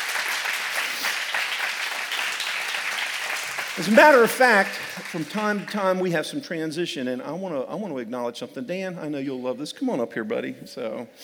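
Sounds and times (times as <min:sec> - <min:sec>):
applause for team members at a morning team meeting: 0:00.0 - 0:06.0
speech: 0:03.8 - 0:11.2.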